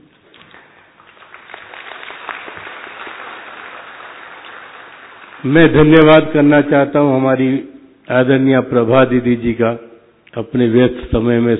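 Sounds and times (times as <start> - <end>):
audience clapping: 0.3 - 6.3
speech: 5.4 - 11.5.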